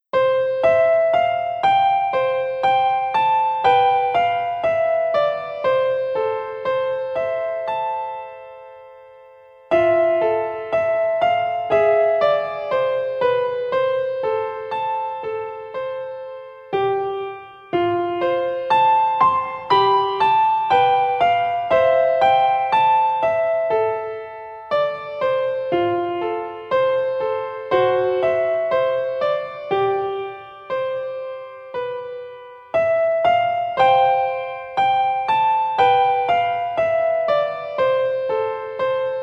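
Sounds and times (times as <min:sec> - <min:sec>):
piano: 0:00.0 - 0:39.2.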